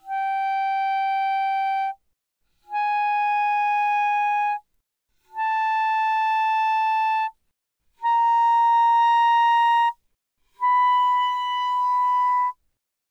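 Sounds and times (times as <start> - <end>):
E-flat clarinet notes played mezzo forte from C5 to B5: 0.0 - 2.0, 2.7 - 4.6, 5.4 - 7.3, 8.0 - 10.0, 10.6 - 12.6.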